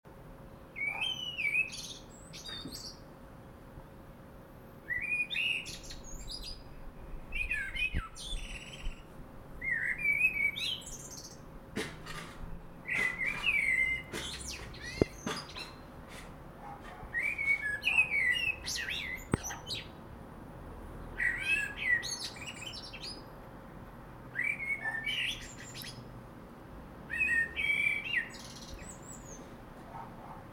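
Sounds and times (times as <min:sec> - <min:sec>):
low noise: 0:00.1 - 0:30.5
common blackbird singing: 0:00.7 - 0:03.0, 0:04.9 - 0:11.5, 0:12.5 - 0:15.8, 0:16.9 - 0:20.0, 0:21.1 - 0:23.3, 0:24.3 - 0:26.0, 0:27.1 - 0:29.5.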